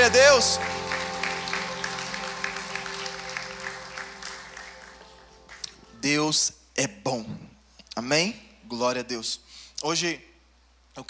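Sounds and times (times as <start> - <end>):
speech: 0.0 - 0.8, 6.0 - 10.3
audience applauding: 0.0 - 6.0
sustained keyboard drone: 0.0 - 6.0.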